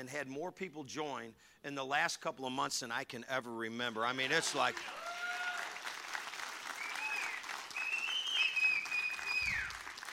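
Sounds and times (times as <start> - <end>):
speech: 0.0 - 5.1
church congregation applause: 4.1 - 10.1.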